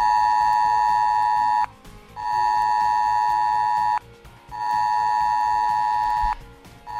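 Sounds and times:
civil protection emergency alert on mobile phones: 0:00.0 - 0:06.9.

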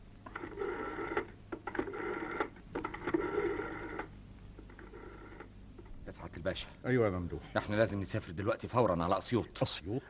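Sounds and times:
low steady hum: 0:00.0 - 0:10.0
telephone dialing tones: 0:00.2 - 0:05.5
speech: 0:06.4 - 0:10.0.

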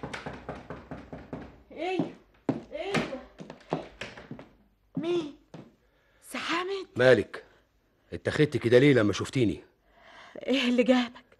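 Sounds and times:
hard knocking on a door: 0:00.0 - 0:05.7
speech: 0:01.8 - 0:02.1, 0:05.0 - 0:05.4, 0:06.9 - 0:07.4, 0:08.1 - 0:09.7, 0:10.4 - 0:11.2.

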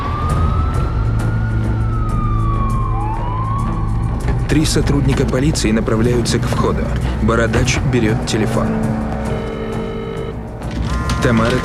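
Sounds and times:
police car siren wailing in front of an electricity company building: 0:00.0 - 0:05.4, 0:09.2 - 0:11.6
speech: 0:04.5 - 0:09.5, 0:11.2 - 0:11.6.

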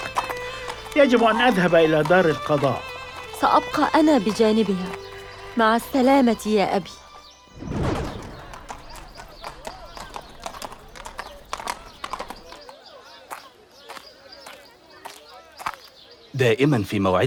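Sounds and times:
horse hooves clip-clopping: 0:00.0 - 0:12.8
speech: 0:01.0 - 0:05.0, 0:05.6 - 0:07.0, 0:16.4 - 0:17.2.

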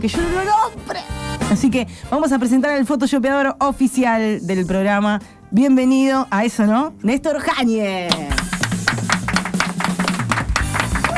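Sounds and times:
speech: 0:00.0 - 0:08.5
audience applause: 0:08.1 - 0:11.1.

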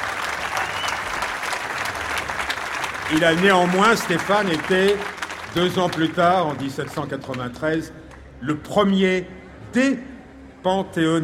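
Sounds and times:
audience applause at a live recorded show: 0:00.0 - 0:07.5
faint murmur of crowd voices: 0:03.0 - 0:11.2
speech: 0:03.1 - 0:11.2.

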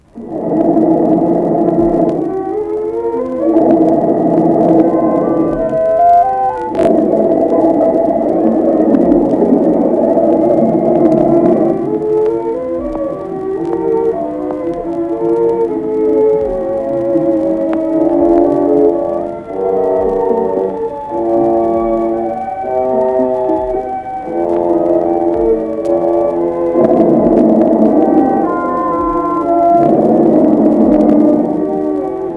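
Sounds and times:
Futurist intonarumori electric noise instruments droning and roaring: 0:00.0 - 0:32.3.

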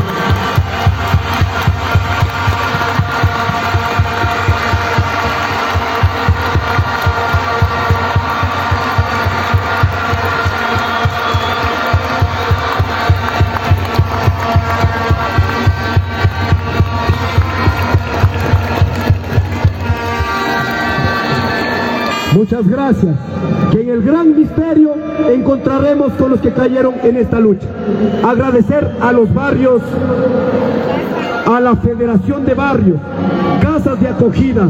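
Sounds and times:
crowd applauding: 0:00.0 - 0:22.4
speech: 0:22.5 - 0:34.6.

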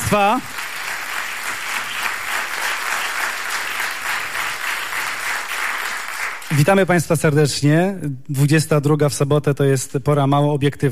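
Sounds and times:
audience clapping greeting the entrance of two hosts: 0:00.0 - 0:07.0
speech: 0:00.1 - 0:00.6, 0:06.5 - 0:10.9.

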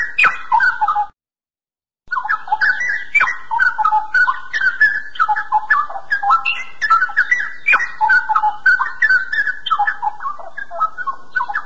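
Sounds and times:
Oriental magpie-robin singing: 0:00.0 - 0:01.1, 0:02.1 - 0:11.6.

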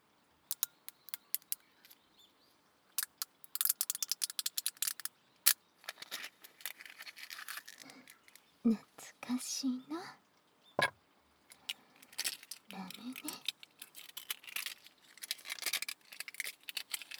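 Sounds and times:
ice cubes squeaking: 0:00.5 - 0:01.7, 0:03.0 - 0:05.1, 0:05.9 - 0:08.5, 0:11.5 - 0:17.1
speech: 0:08.7 - 0:10.2.

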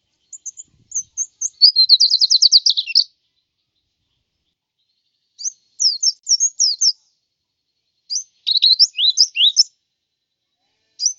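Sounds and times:
white-eye twittering song: 0:00.2 - 0:03.1, 0:05.4 - 0:07.1, 0:08.0 - 0:09.8, 0:11.0 - 0:11.1.

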